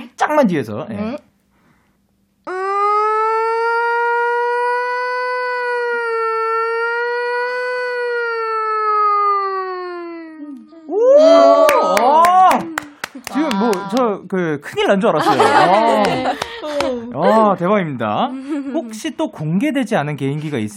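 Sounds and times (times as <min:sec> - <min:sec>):
speech: 0:00.3 - 0:01.3, 0:14.3 - 0:20.7
person imitating siren with the mouth: 0:02.5 - 0:12.8
laughter: 0:12.0 - 0:14.0, 0:15.1 - 0:17.4.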